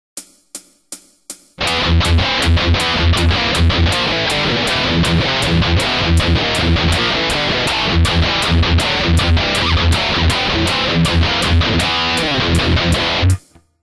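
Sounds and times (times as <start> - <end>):
shred guitar: 1.6 - 13.6.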